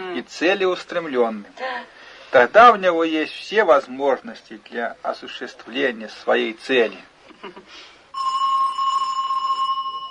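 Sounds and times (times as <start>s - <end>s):
speech: 0.2s - 8.3s
doorbell ringing: 8.2s - 10.0s.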